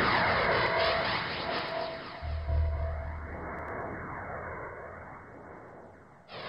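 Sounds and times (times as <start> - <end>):
deconstructed chromatic notes in E: 0.1 - 3.9.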